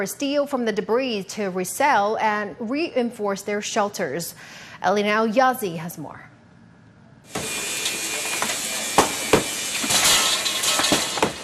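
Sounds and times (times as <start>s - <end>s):
speech: 0.0s - 6.3s
heavy hammer breaking concrete blocks: 8.3s - 11.4s.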